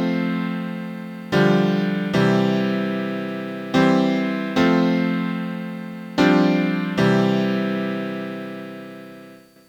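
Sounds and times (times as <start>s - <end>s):
piano: 0.0s - 9.6s.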